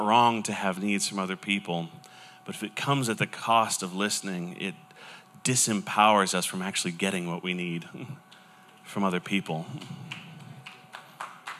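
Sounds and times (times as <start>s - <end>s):
speech: 0.0s - 8.3s, 8.9s - 10.2s
slow hand clap: 9.8s - 11.5s.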